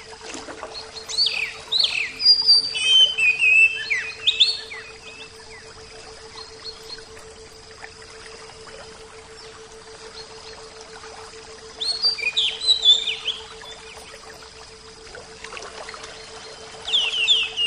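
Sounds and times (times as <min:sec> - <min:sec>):
Oriental magpie-robin song: 0:00.6 - 0:07.3, 0:11.6 - 0:14.4, 0:16.0 - 0:17.6.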